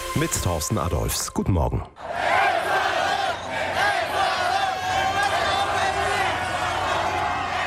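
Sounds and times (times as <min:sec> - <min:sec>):
speech: 0:00.2 - 0:02.2
football fans roaring and chanting in celebration: 0:02.0 - 0:07.6.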